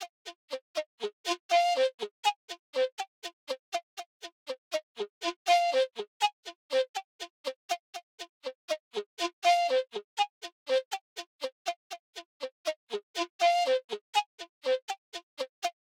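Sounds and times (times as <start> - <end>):
flute: 0.0 - 4.1, 4.7 - 15.8.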